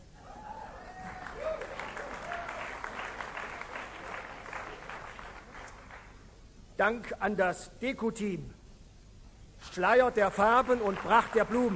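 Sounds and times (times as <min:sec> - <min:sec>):
audience applause: 0:00.8 - 0:06.1, 0:10.4 - 0:11.7
speech: 0:06.8 - 0:08.6, 0:09.8 - 0:11.7.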